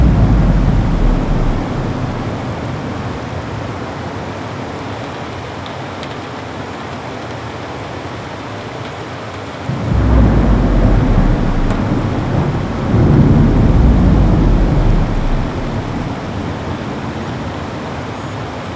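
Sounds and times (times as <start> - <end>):
ocean ambience: 0.0 - 4.8, 9.7 - 18.7
rainstorm: 0.0 - 18.7.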